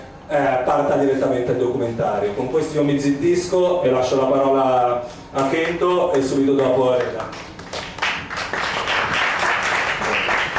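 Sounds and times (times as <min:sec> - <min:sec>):
speech: 0:00.3 - 0:07.5
audience applause: 0:07.6 - 0:10.5.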